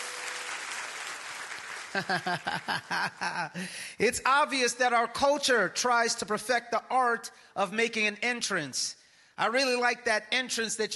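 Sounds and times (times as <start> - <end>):
crowd clapping: 0.0 - 3.2
laughter: 1.9 - 3.7
speech: 1.9 - 10.9.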